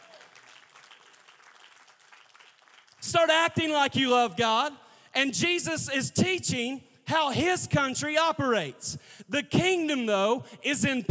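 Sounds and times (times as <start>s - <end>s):
audience clapping: 0.0s - 3.2s
speech: 3.1s - 11.1s.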